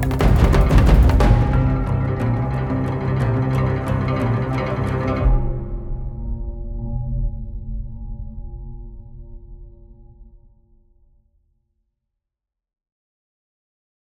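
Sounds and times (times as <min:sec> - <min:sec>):
ethnic orchestra playing: 0:00.0 - 0:05.7.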